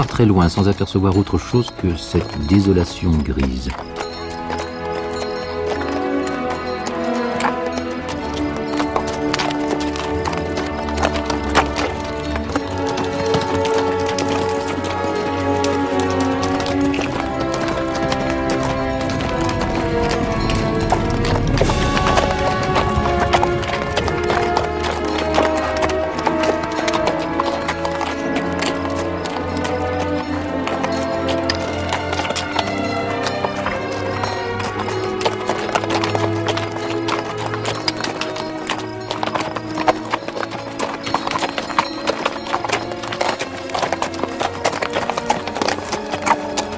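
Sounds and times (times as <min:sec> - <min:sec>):
speech: 0:00.0 - 0:04.0
horse hooves clip-clopping crossing a heath: 0:00.0 - 0:46.7
sustained tonal wash: 0:18.7 - 0:26.1.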